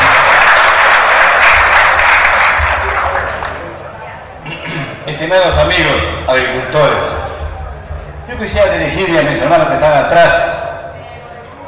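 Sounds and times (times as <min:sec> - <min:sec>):
large crowd applauding: 0:00.0 - 0:04.0
speech: 0:05.3 - 0:07.1, 0:08.3 - 0:10.6.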